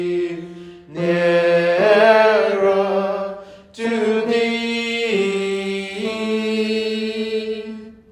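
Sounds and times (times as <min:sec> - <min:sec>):
tenor singing gospel: 0:00.0 - 0:08.1.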